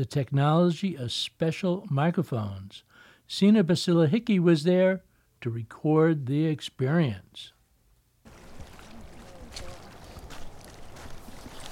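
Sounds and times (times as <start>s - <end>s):
speech: 0.0s - 7.6s
rain recorded by a hydrophone in the water: 8.3s - 11.7s
water moving recorded by a hydrophone: 8.3s - 11.7s.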